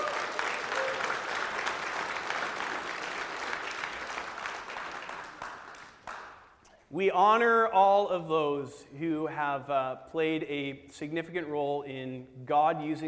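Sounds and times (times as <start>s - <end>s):
crowd applauding: 0.0s - 6.6s
speech: 6.9s - 13.0s.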